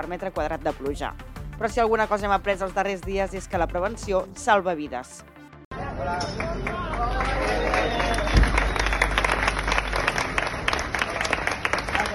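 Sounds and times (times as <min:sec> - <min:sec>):
speech: 0:00.0 - 0:05.3, 0:06.1 - 0:07.4
applause welcoming returning police officers: 0:06.3 - 0:12.1.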